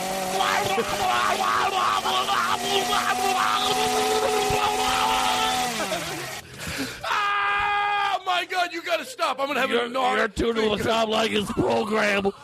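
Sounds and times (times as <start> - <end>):
chainsaw running: 0.0 - 6.9
laughter: 0.3 - 7.1, 10.6 - 12.4
speech: 0.7 - 4.4, 8.4 - 12.4.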